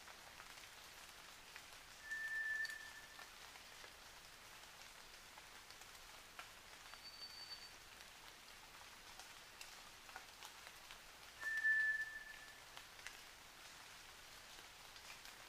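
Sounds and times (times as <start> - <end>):
White's thrush singing flat drawn-out whistles at night: 2.0 - 3.0, 11.4 - 12.6.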